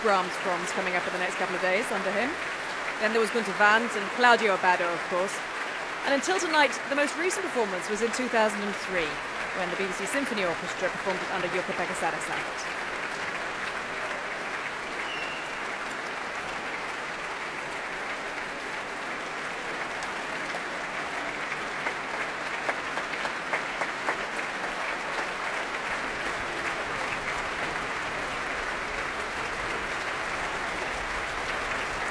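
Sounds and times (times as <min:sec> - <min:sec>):
speech: 0:00.0 - 0:12.9
concert audience applause: 0:00.0 - 0:32.0.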